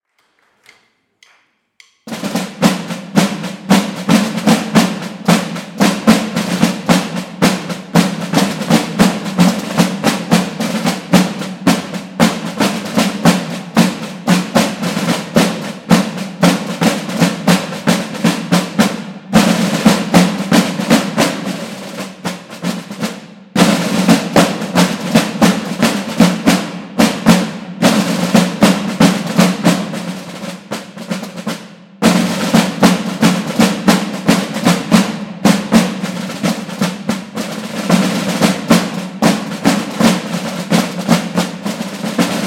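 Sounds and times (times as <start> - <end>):
drummers playing an encore: 0.2 - 42.4.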